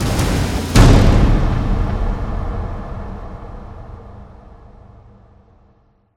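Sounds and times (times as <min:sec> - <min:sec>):
power drum fill: 0:00.0 - 0:04.0
drum hit: 0:00.0 - 0:04.8.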